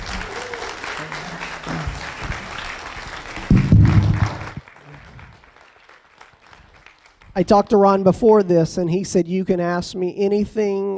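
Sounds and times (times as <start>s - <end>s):
audience hand clapping: 0.0s - 7.6s
speech: 7.4s - 10.9s.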